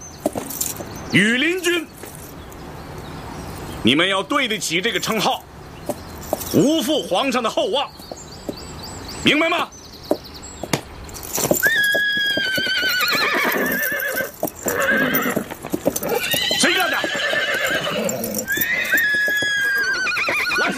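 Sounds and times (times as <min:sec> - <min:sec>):
hooves clopping and stamping: 0:00.0 - 0:03.8, 0:05.0 - 0:09.2, 0:09.9 - 0:20.7
speech: 0:00.2 - 0:01.9, 0:03.8 - 0:05.5, 0:06.5 - 0:08.0, 0:09.2 - 0:09.8
horse neighing: 0:11.6 - 0:20.7.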